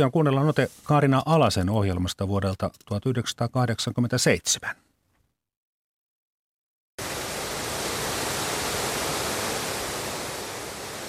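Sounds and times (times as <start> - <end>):
speech: 0.0 - 4.8
foaming river rapids: 7.0 - 11.0.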